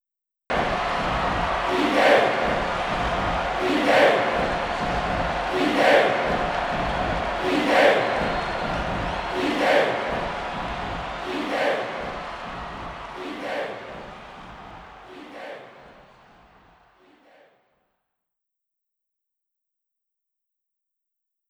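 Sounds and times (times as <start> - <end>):
crowd chanting: 0.5 - 17.7.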